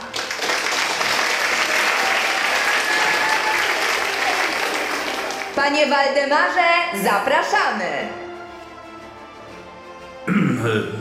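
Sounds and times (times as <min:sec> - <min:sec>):
audience applause: 0:00.0 - 0:05.6
speech: 0:05.6 - 0:08.2, 0:10.6 - 0:10.9.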